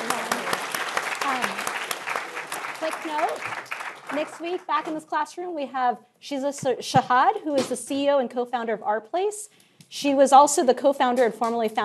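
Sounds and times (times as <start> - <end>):
classroom audience applause: 0.0 - 4.7
speech: 3.0 - 11.8.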